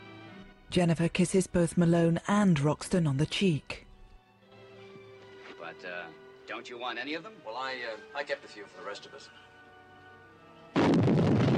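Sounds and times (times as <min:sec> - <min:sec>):
speech: 0:00.7 - 0:03.8, 0:05.8 - 0:09.5
explosion: 0:10.8 - 0:11.5.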